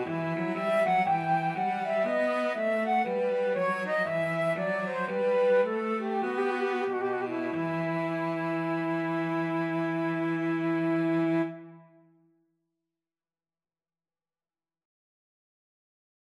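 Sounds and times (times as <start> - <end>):
cello: 0.0 - 12.0
flute: 0.0 - 12.0.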